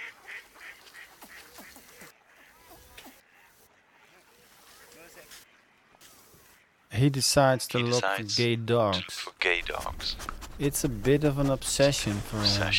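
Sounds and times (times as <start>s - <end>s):
birds flapping in water: 0.0s - 5.3s
ducks quacking on pond: 0.0s - 10.2s
speech: 7.0s - 12.7s.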